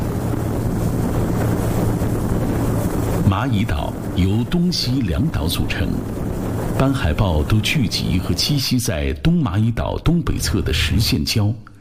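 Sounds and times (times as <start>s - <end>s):
speedboat engine drone: 0.0s - 8.6s
rush of spray: 0.0s - 8.7s
wind buffeting: 0.0s - 11.6s
speech: 3.4s - 6.2s, 6.8s - 11.7s.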